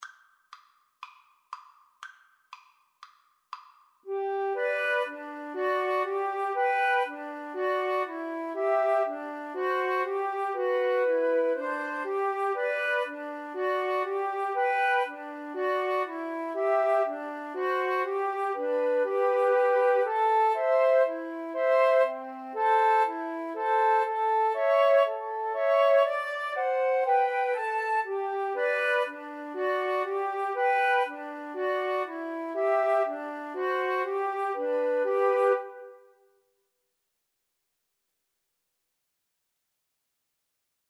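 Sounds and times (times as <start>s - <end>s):
flute trio playing: 4.1s - 36.2s.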